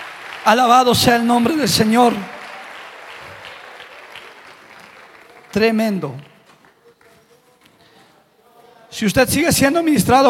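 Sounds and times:
audience applauding: 0:00.0 - 0:07.2
speech: 0:00.4 - 0:02.4, 0:05.5 - 0:06.3, 0:08.9 - 0:10.2.

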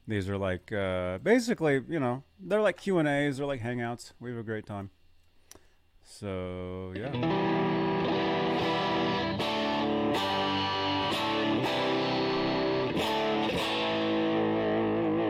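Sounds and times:
speech: 0:00.1 - 0:05.0, 0:06.1 - 0:07.8
electric guitar with distortion effect: 0:07.0 - 0:15.2.

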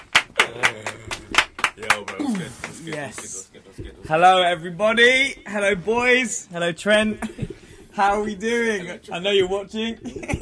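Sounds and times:
person clapping: 0:00.0 - 0:03.4
speech: 0:00.5 - 0:10.4.

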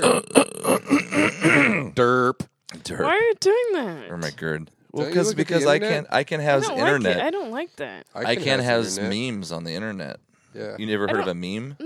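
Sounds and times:
person clearing their throat into a microphone: 0:00.0 - 0:02.4
speech: 0:02.0 - 0:11.8.

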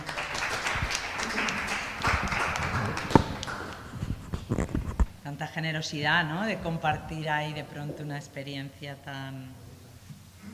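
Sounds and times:
audience applause: 0:00.0 - 0:04.2
speech: 0:05.4 - 0:09.6.

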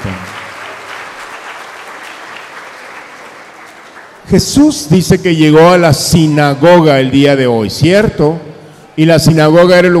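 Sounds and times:
crowd applause: 0:00.0 - 0:04.2
speech: 0:04.3 - 0:09.9.

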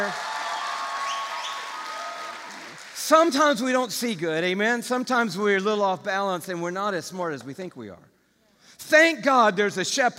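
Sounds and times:
crowd applause: 0:00.0 - 0:03.1
speech: 0:03.1 - 0:08.1, 0:08.8 - 0:10.1.

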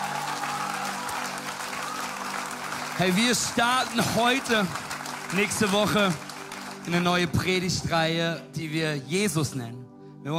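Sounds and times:
crowd applause: 0:00.0 - 0:07.9
speech: 0:03.0 - 0:10.3.

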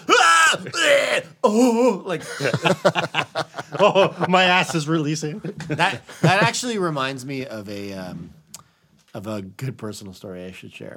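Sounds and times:
voice imitating weightlifter grunting and yelling: 0:00.0 - 0:02.1
speech: 0:01.2 - 0:08.4, 0:09.2 - 0:10.9
laughter: 0:02.1 - 0:07.0.

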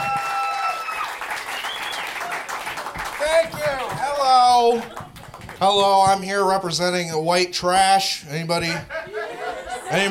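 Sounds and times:
whistles and cheers: 0:00.0 - 0:02.5
comedy club audience applause: 0:00.0 - 0:05.8
speech: 0:04.3 - 0:05.0, 0:05.6 - 0:09.0
laughter: 0:08.6 - 0:10.0.

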